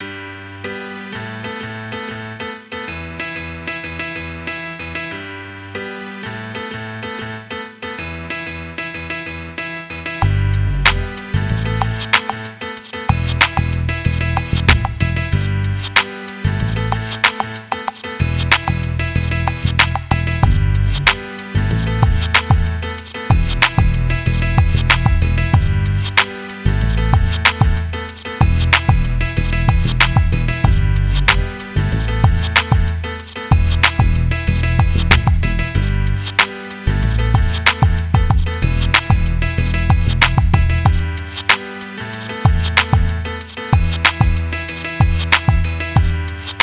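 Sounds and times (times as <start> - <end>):
funk music: 0.0 - 46.6.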